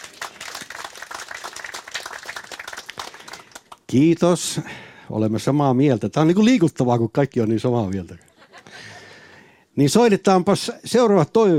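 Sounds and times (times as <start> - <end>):
crowd applauding: 0.0 - 3.9
speech: 3.9 - 8.3, 9.8 - 11.5.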